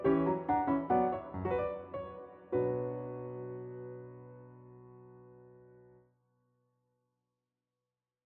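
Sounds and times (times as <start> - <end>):
minuet music: 0.0 - 4.2.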